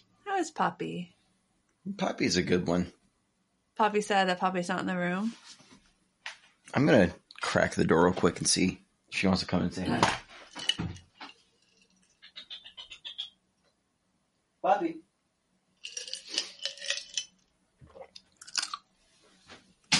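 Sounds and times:
speech: 0.4 - 1.2, 1.8 - 3.0, 3.8 - 5.6, 6.7 - 11.0
chomping ice near the microphone: 15.8 - 17.3.

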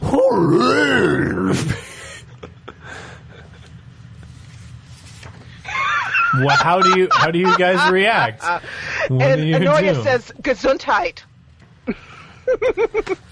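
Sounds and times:
person imitating an owlbear growling roar: 0.0 - 1.8
speech: 0.3 - 1.9, 6.4 - 11.3, 11.9 - 13.3
laughter: 1.6 - 3.8, 5.7 - 10.0, 11.9 - 13.3
quiet rustling: 3.5 - 5.6.

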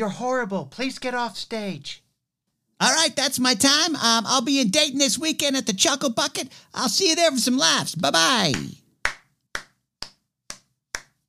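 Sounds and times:
speech: 0.0 - 2.0, 2.8 - 8.8
crisp hand claps: 8.4 - 11.2.

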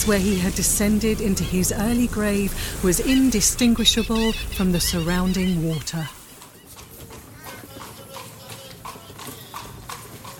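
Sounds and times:
constant low rumble: 0.0 - 5.9
speech: 0.0 - 6.2
horse-drawn carriage hooves clip-clopping: 3.0 - 10.3.

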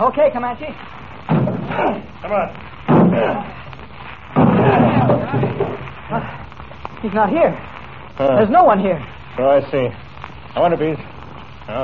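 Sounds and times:
speech: 0.0 - 3.6, 4.4 - 6.4, 7.0 - 10.0, 10.6 - 11.1
men's voices murmuring: 1.6 - 3.8, 4.4 - 6.6
door smashed in with splintering: 2.9 - 3.2, 4.4 - 5.8.

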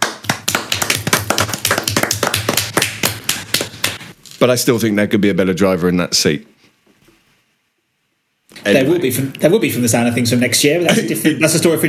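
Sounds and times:
hand clapping: 0.0 - 4.1
speech: 4.4 - 6.6, 8.6 - 11.8.

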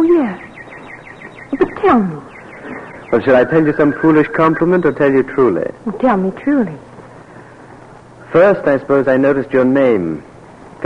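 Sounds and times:
nightingale singing in a peach tree: 0.0 - 5.4
speech: 1.8 - 2.2, 3.1 - 6.9, 8.4 - 10.8.

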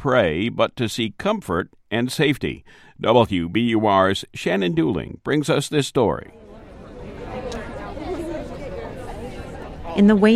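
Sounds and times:
speech: 0.0 - 6.4, 10.0 - 10.3
crowd chatter of people gathering at an outdoor vigil: 6.3 - 10.3.

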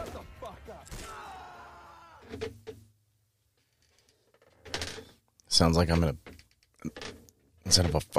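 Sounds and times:
speech: 2.3 - 2.6, 5.6 - 7.0, 7.7 - 8.1
chair creaking: 3.6 - 5.3, 5.9 - 8.0.

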